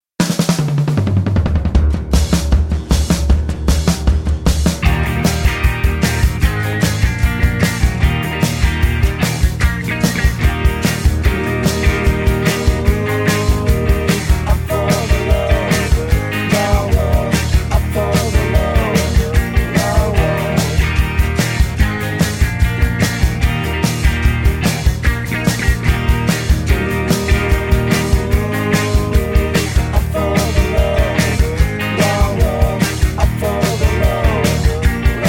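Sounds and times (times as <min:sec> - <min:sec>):
backing track in E flat without guitar solo: 0:00.2 - 0:35.2.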